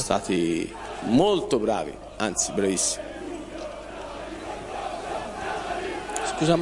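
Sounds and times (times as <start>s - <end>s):
speech: 0.0s - 3.1s, 6.4s - 6.6s
football fans chanting in a city square: 0.0s - 6.6s.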